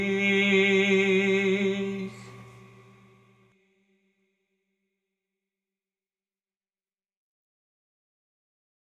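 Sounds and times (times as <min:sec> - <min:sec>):
Serbian liturgical chant: 0:00.0 - 0:03.7.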